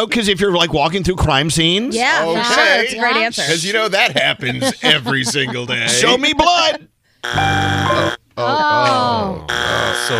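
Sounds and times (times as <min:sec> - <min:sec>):
speech: 0:00.0 - 0:10.1
laughter: 0:03.9 - 0:06.9
game show wrong-answer buzzer: 0:07.2 - 0:08.2, 0:09.5 - 0:10.1.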